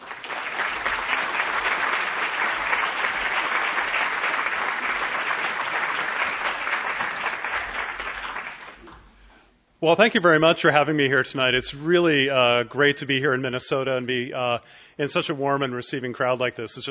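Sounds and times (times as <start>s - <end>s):
audience applause: 0.0s - 9.1s
speech: 9.8s - 16.9s.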